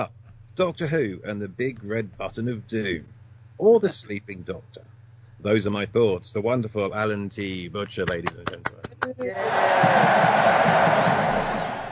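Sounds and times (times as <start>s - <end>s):
speech: 0.0s - 11.2s
live audience cheering, shouting and whooping: 9.3s - 11.8s.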